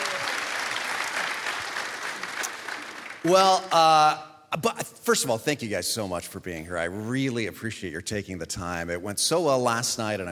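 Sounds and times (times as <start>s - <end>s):
audience applauding to welcome a panel: 0.0s - 3.5s
speech: 3.2s - 10.3s.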